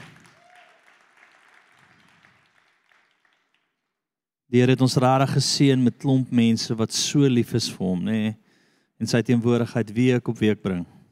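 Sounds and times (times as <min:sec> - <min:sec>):
audience applause: 0:00.0 - 0:03.7
speech: 0:04.5 - 0:08.4, 0:09.0 - 0:11.0.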